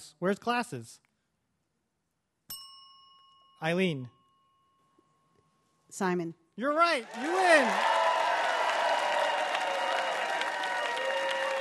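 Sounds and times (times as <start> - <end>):
speech: 0.2 - 1.1, 3.6 - 4.2, 5.9 - 8.0
audience applause: 7.0 - 11.5.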